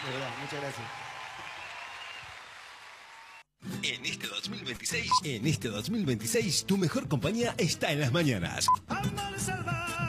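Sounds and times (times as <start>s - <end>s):
speech: 0.0s - 1.1s, 3.8s - 10.0s
applause: 0.0s - 3.5s.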